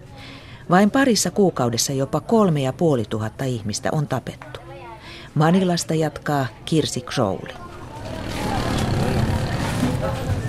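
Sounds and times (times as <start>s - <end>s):
speech: 0.7s - 4.6s, 5.4s - 7.7s
faint indistinct voices: 6.8s - 10.4s
moped taxis rattling along a street: 7.8s - 10.3s.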